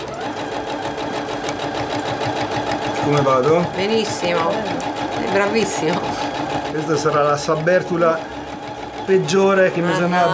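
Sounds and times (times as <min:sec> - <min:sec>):
sewing machine stitching: 0:00.0 - 0:10.3
speech: 0:03.1 - 0:06.2, 0:06.8 - 0:08.4, 0:09.1 - 0:10.3.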